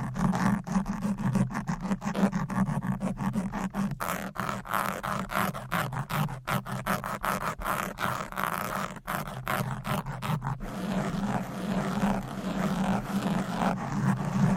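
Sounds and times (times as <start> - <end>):
fast aggressive scratching on a microphone: 0.0 - 14.5.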